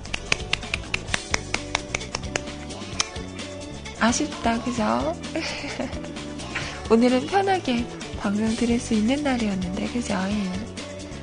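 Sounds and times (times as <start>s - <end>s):
people clapping: 0.0s - 3.2s
speech: 4.0s - 6.3s, 6.9s - 10.7s
laughter: 5.2s - 6.3s.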